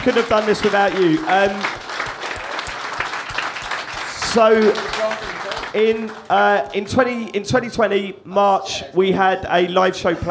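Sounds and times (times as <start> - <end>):
speech: 0.0 - 1.8, 4.3 - 10.2
audience round of applause: 0.0 - 6.8.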